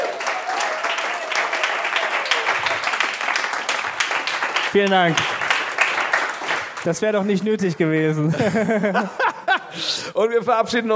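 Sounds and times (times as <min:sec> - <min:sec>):
applause: 0:00.0 - 0:07.7
speech: 0:04.7 - 0:05.4, 0:06.8 - 0:10.9
laughter: 0:08.2 - 0:10.1.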